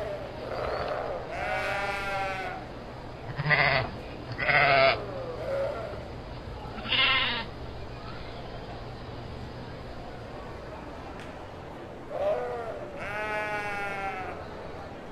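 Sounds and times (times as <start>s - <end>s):
sheep bleating: 0.5s - 2.6s, 3.3s - 6.0s, 6.8s - 7.5s, 12.2s - 14.4s.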